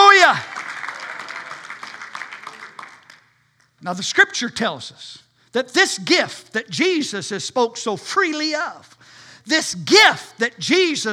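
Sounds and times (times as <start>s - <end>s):
church congregation clapping during worship: 0.0s - 3.4s
speech: 3.8s - 11.1s.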